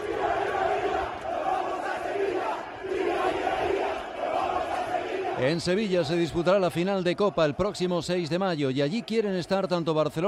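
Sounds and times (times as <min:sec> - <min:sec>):
football fans chanting in unison: 0:00.0 - 0:09.8
speech: 0:05.4 - 0:10.2.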